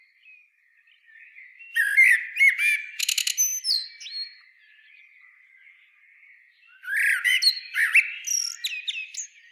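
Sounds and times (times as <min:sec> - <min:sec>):
common blackbird Turdus merula singing in fluty warbled phrases with trills: 0:00.9 - 0:05.7, 0:06.6 - 0:09.4.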